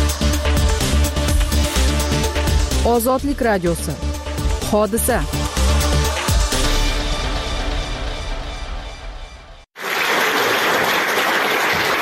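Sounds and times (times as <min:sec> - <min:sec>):
music: 0:00.0 - 0:09.7
speech: 0:02.8 - 0:04.1, 0:04.7 - 0:05.4
applause from a full house at the Ilhom theatre after a play: 0:09.8 - 0:12.0.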